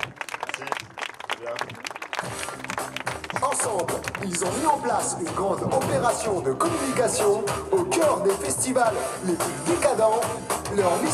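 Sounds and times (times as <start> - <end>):
audience applauding: 0.0 - 6.6
speech: 1.4 - 11.1.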